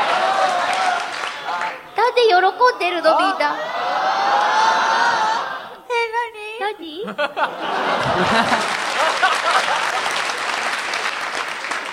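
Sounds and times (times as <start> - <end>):
laughter: 0.0 - 1.8, 3.1 - 5.8, 6.9 - 11.4
applause: 0.0 - 1.9, 8.0 - 11.9
speech: 2.7 - 4.4, 7.0 - 9.7.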